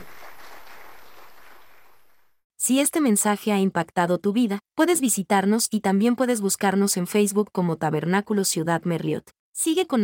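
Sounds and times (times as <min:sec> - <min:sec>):
audience applause: 0:00.0 - 0:02.2
speech: 0:02.7 - 0:10.0.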